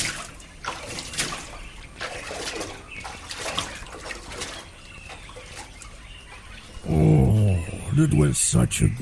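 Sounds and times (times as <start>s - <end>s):
water splashing from a person taking an early-morning swim and bath: 0.0s - 7.0s
speech: 8.0s - 9.0s.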